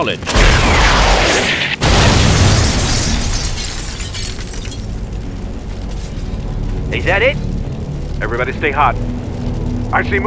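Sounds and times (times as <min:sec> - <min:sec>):
speech: 0:00.0 - 0:01.6, 0:06.9 - 0:07.5, 0:08.2 - 0:10.2
rocket-propelled grenade exploding: 0:00.3 - 0:05.0.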